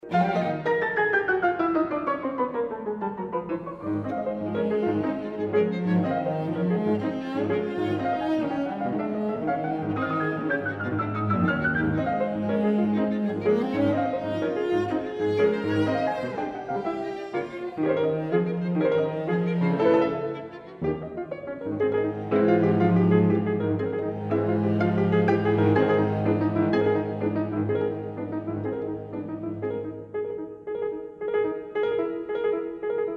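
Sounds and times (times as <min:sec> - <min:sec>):
piano trio: 0:00.0 - 0:33.1.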